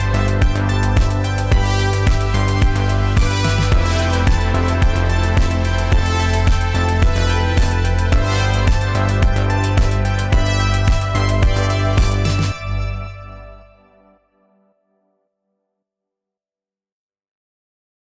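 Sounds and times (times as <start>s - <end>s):
chillwave music: 0.0s - 14.2s.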